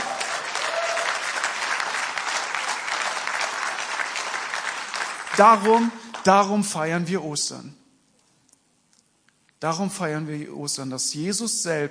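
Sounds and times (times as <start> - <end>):
crowd applause: 0.0 - 6.4
speech: 5.4 - 7.8, 9.6 - 11.8.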